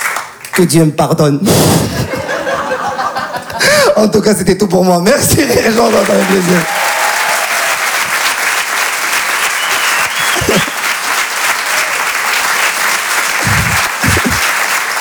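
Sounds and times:
speech: 0.6s - 2.2s, 3.7s - 6.8s
laughter: 1.9s - 3.9s, 10.2s - 10.9s, 13.2s - 14.6s
audience applause: 5.6s - 14.9s.

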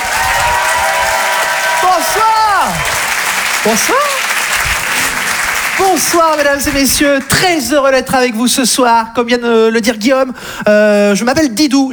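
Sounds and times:
audience applause: 0.0s - 7.5s
speech: 1.8s - 3.0s, 3.6s - 4.1s, 5.8s - 11.9s.

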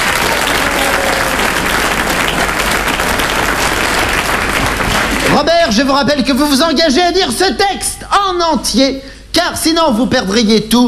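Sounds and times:
audience applause: 0.0s - 5.5s
speech: 5.4s - 10.8s.

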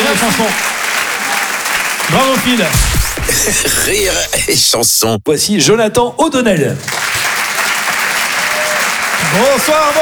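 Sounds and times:
audience applause for a comedian at a live comedy and song show: 0.0s - 4.1s, 6.8s - 10.0s
speech: 0.2s - 0.7s, 2.1s - 7.2s, 9.3s - 10.0s.

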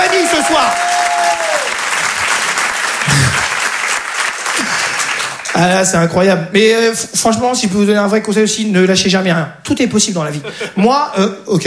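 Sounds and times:
crowd applause: 0.0s - 5.6s
speech: 5.6s - 11.6s.

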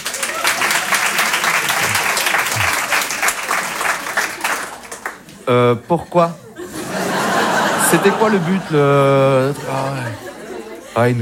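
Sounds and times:
crowd clapping: 0.0s - 5.5s
laughter: 0.6s - 4.6s, 5.5s - 11.2s
speech: 5.5s - 6.4s, 7.9s - 10.3s, 11.0s - 11.2s.

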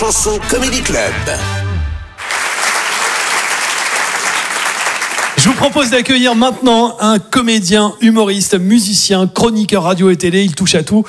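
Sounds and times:
speech: 0.1s - 1.6s, 5.4s - 11.0s
comedy club audience applause: 2.2s - 6.0s.

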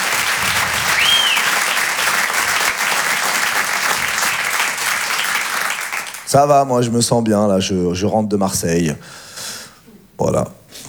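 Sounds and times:
audience applause: 0.0s - 6.4s
speech: 6.3s - 9.3s, 10.2s - 10.6s.

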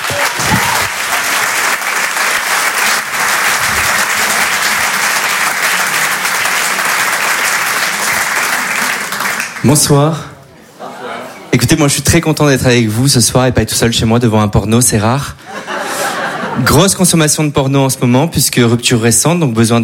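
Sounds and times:
comedy show audience applauding: 0.0s - 9.9s
speech: 9.6s - 10.3s, 11.7s - 15.4s, 16.6s - 19.8s
laughter: 10.6s - 11.5s, 15.4s - 16.9s.

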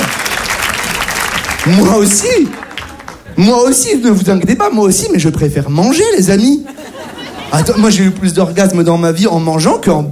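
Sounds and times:
audience applause at a French stand-up comedy show: 0.0s - 3.5s
speech: 1.6s - 2.6s, 3.4s - 6.9s, 7.5s - 10.1s
laughter: 1.8s - 3.6s, 6.4s - 8.4s.

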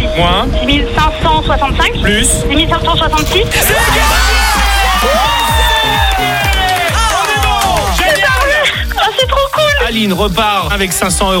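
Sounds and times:
speech: 0.2s - 4.4s, 9.2s - 11.3s
applause and cheering: 3.5s - 9.2s.

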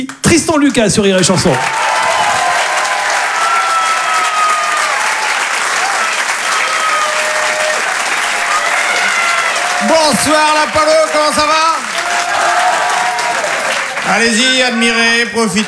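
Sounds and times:
speech: 0.0s - 2.1s, 9.9s - 11.8s, 14.1s - 15.6s
audience applause: 0.7s - 15.6s.

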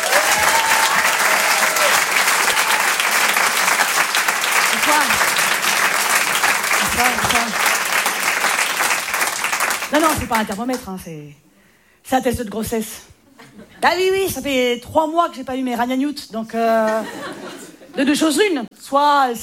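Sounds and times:
comedy-club audience ovation clapping for comedian Elisabeth Buffet: 0.0s - 10.8s
speech: 10.0s - 11.5s, 12.1s - 13.1s, 13.8s - 17.4s, 18.0s - 19.4s
laughter: 16.9s - 18.0s.

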